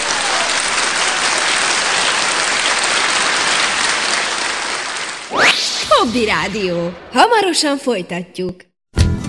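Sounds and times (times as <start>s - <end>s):
audience clapping: 0.0s - 5.3s
speech: 6.0s - 8.7s
music: 8.9s - 9.2s.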